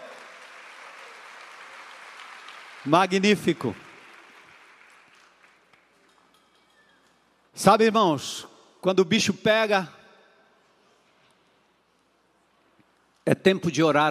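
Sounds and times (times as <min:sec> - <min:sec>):
audience applause: 0:00.0 - 0:06.0
speech: 0:02.8 - 0:03.8, 0:07.6 - 0:10.0, 0:13.3 - 0:14.0.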